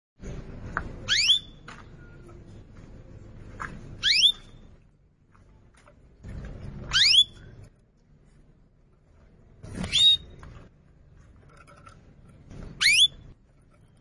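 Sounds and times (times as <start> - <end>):
Atlantic canary song phrases: 1.0 - 1.6, 4.0 - 4.6, 6.9 - 7.4, 9.8 - 10.3, 12.8 - 13.2.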